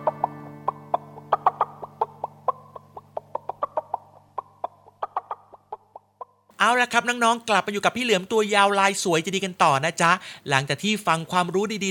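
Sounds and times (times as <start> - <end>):
chicken clucking: 0.0 - 6.5
speech: 6.6 - 11.9.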